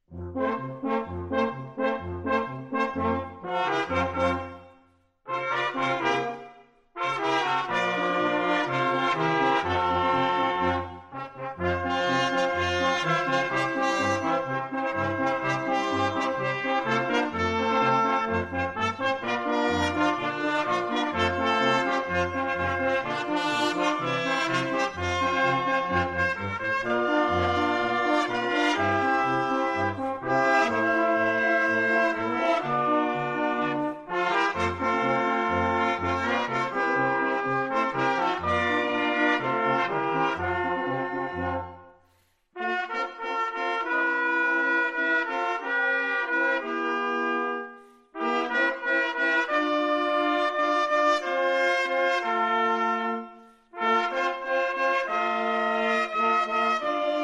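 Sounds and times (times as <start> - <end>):
fanfare brass band playing colinde carols: 0.1 - 41.9, 42.6 - 57.2.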